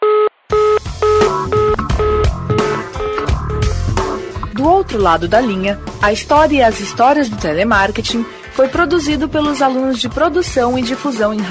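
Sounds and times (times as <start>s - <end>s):
short electronic telephone beep: 0.0s - 3.8s
rapid telephone dialing tones as a call is transferred: 0.1s - 3.8s
speech: 4.8s - 11.4s.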